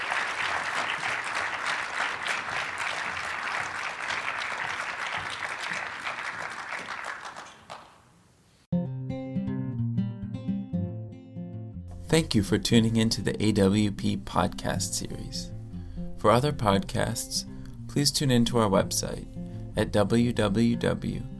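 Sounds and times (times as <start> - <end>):
crowd applauding: 0.0 - 8.1
bright musical passage with clear tones and plucked notes: 8.7 - 21.3
speech: 12.1 - 15.5, 16.2 - 21.3.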